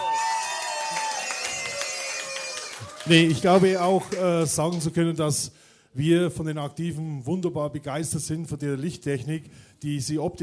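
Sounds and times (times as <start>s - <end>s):
crowd whooping at a stage dance event: 0.0s - 4.2s
crowd clapping at a stage dance event: 0.0s - 5.2s
speech: 3.0s - 10.4s.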